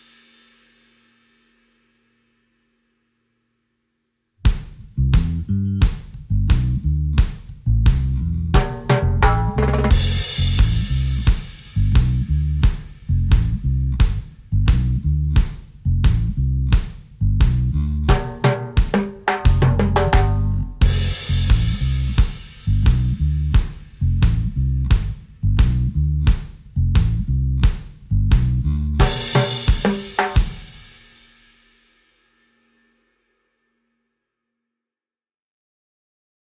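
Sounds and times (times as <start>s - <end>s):
drums: 0.0s - 1.7s, 4.4s - 32.0s
bass: 4.4s - 31.0s.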